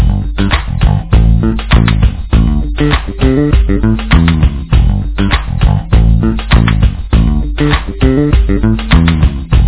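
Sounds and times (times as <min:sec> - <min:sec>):
jazz bass playing: 0:00.0 - 0:09.6.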